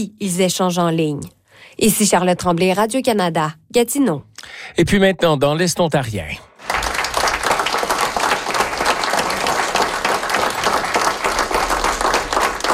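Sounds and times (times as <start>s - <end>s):
speech: 0.0s - 6.5s
applause from the United Counties of Prescott and Russell council: 6.6s - 12.7s.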